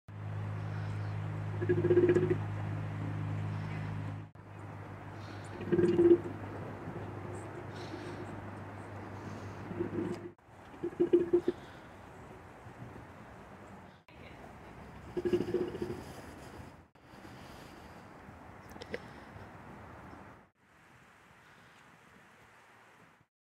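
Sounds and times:
golden takin calling: 0.5s - 12.4s, 15.0s - 16.4s.

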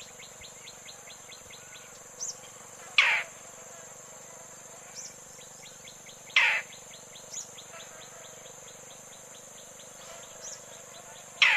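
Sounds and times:
roller harsh grating calls: 3.0s - 3.4s, 6.3s - 6.8s.

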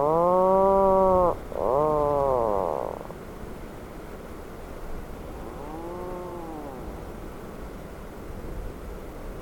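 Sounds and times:
Atlantic puffin calling: 0.0s - 3.1s, 5.3s - 7.1s.

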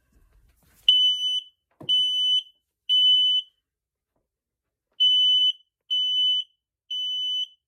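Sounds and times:
fire alarm: 0.9s - 3.6s, 5.0s - 7.6s.

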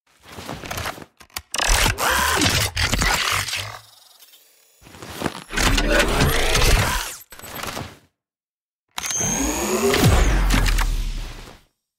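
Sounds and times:
futuristic weapons: 1.3s - 4.8s, 5.4s - 7.7s, 9.0s - 11.5s.

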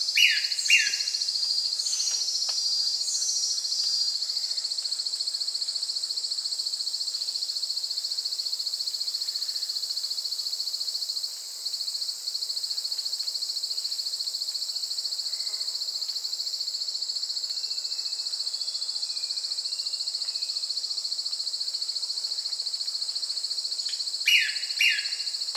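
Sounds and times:
Brownish twistwing: 0.2s - 1.2s, 24.3s - 25.4s.

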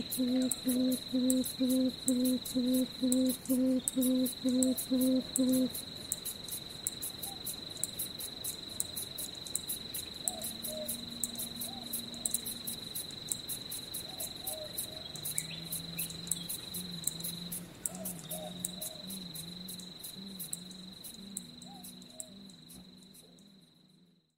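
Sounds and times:
Papuan frogmouth calling: 0.0s - 5.7s, 10.2s - 12.8s, 14.1s - 23.5s.

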